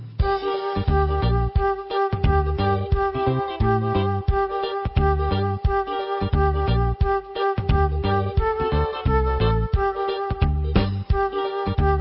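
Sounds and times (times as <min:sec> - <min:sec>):
flute: 0:00.2 - 0:11.9
oboe: 0:00.2 - 0:11.9.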